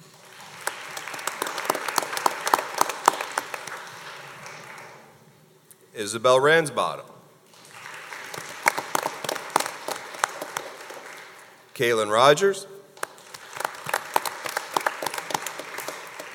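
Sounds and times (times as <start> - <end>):
audience applause: 0.0 - 5.1, 7.5 - 11.7, 13.0 - 16.3
speech: 6.0 - 7.1, 11.8 - 12.7.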